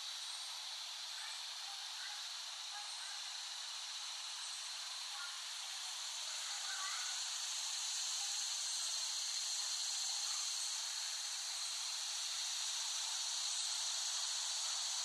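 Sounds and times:
cicadas droning: 0.0s - 15.0s.

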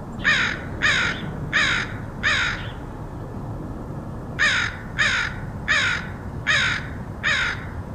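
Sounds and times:
crow cawing: 0.2s - 2.8s, 4.4s - 7.9s.

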